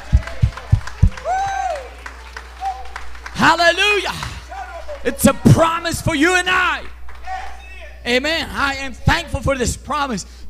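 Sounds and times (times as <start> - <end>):
audience clapping: 0.0 - 5.9
speech: 3.4 - 4.3, 5.0 - 6.9, 8.0 - 10.4.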